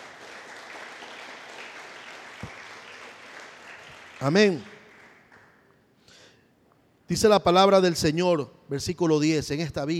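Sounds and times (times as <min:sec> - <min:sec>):
audience applause: 0:00.0 - 0:05.6
speech: 0:04.2 - 0:04.7, 0:07.1 - 0:09.9.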